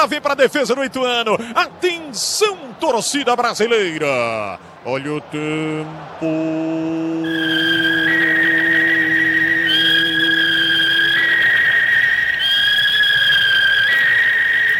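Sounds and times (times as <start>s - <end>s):
speech: 0.0s - 8.1s
hawk screech sound effect: 7.3s - 14.7s.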